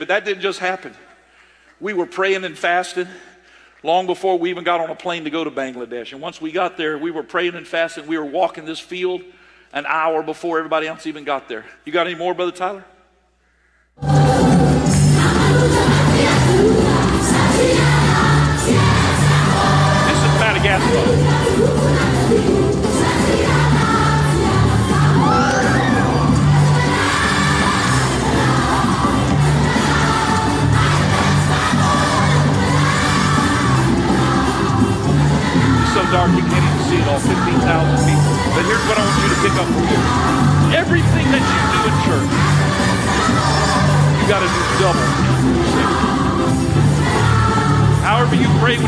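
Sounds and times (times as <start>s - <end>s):
speech: 0.0s - 1.1s, 1.8s - 12.9s, 36.1s - 42.6s, 43.5s - 46.8s, 48.1s - 48.8s
huge crowd roaring and shouting: 14.0s - 48.8s.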